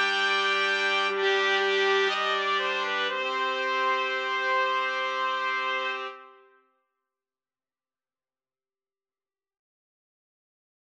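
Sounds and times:
trumpet melody: 0:00.0 - 0:06.6.

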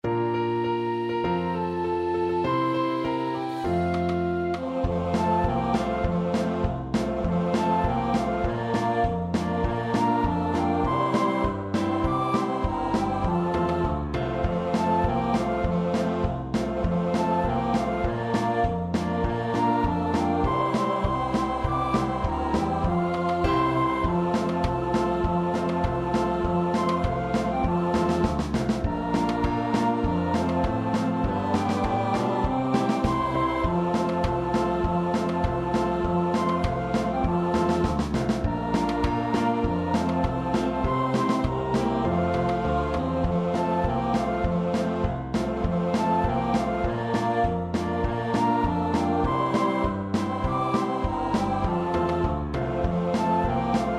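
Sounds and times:
three players performing Christmas song: 0:00.0 - 0:53.9.

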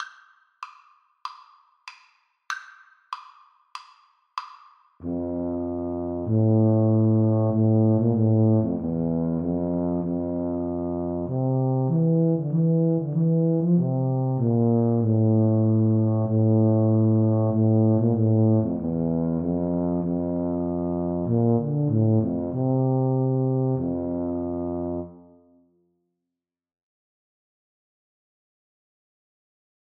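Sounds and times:
tuba duet: 0:05.0 - 0:25.6.

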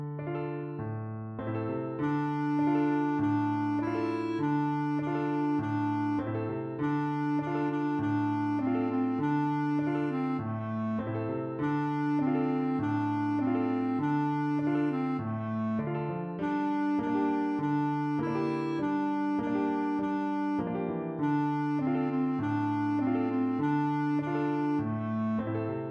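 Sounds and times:
clarinet melody: 0:00.2 - 0:25.8.

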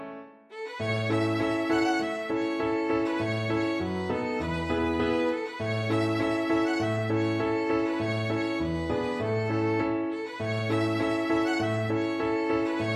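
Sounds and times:
violin folk tune: 0:00.5 - 0:12.9.

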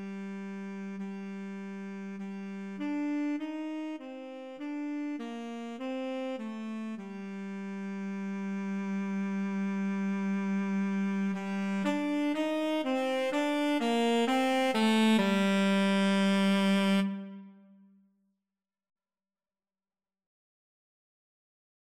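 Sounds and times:
tenor saxophone duet: 0:00.0 - 0:17.7.

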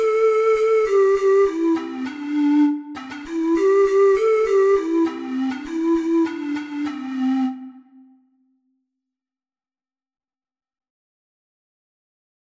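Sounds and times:
six-hole ocarina melody: 0:00.0 - 0:08.2.

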